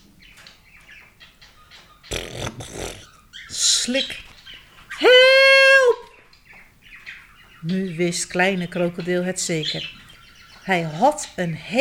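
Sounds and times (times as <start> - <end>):
chirpy tones: 0.0 - 11.7
speech: 3.9 - 4.3, 7.6 - 10.0, 10.7 - 11.7.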